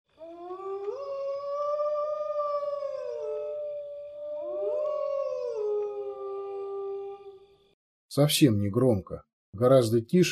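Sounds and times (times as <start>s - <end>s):
man quietly howling like a wolf: 0.2s - 7.3s
speech: 8.2s - 10.3s.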